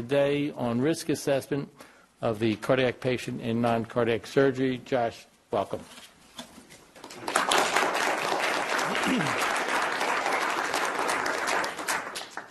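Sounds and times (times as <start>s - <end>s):
speech: 0.0s - 6.1s, 9.0s - 9.5s
audience applause: 7.1s - 12.5s.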